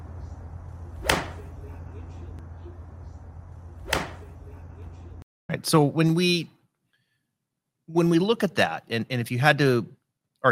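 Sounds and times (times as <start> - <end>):
low steady hum: 0.0 - 5.2
recorded golf swing swishes: 0.8 - 1.7, 3.7 - 4.5
speech: 5.6 - 6.6, 7.9 - 10.5.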